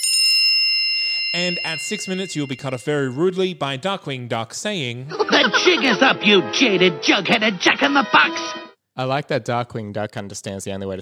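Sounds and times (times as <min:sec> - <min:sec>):
bright bell ding as a warning tone for a timed debate: 0:00.1 - 0:02.7
speech: 0:01.3 - 0:10.9
laughter: 0:05.1 - 0:08.6.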